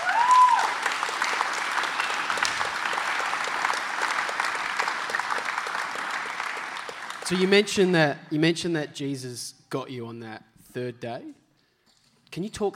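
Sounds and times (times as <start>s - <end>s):
crowd applause: 0.0s - 7.8s
speech: 7.3s - 11.4s, 12.3s - 12.7s.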